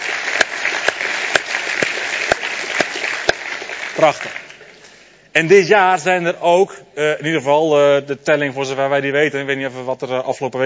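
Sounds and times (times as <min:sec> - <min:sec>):
people clapping: 0:00.0 - 0:05.1
speech: 0:04.0 - 0:04.4, 0:05.3 - 0:10.6.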